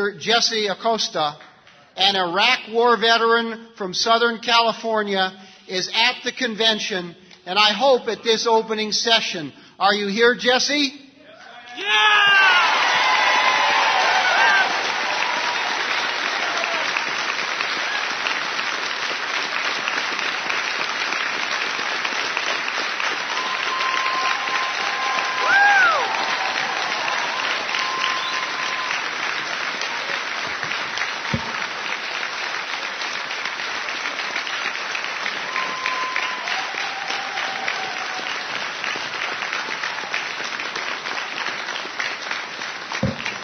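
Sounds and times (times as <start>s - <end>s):
speech: 0.0s - 11.0s, 11.8s - 12.7s
large audience applause: 12.0s - 43.4s
faint cheers and whistles: 23.3s - 29.1s, 35.4s - 38.4s.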